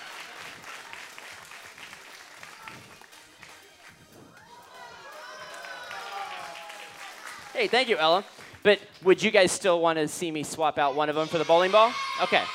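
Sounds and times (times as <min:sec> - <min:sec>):
audience applause: 0:00.0 - 0:08.6
speech: 0:07.6 - 0:12.5.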